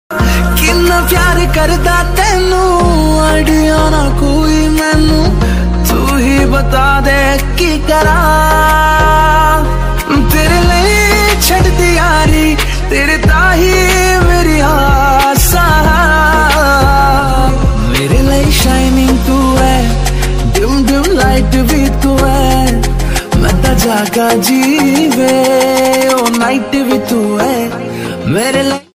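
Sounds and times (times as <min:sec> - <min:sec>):
romantic song ringtone: 0:00.1 - 0:28.9.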